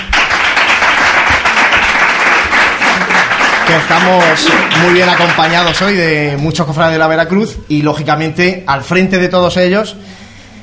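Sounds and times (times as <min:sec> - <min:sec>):
crowd applause: 0:00.0 - 0:06.2
speech: 0:03.7 - 0:10.2.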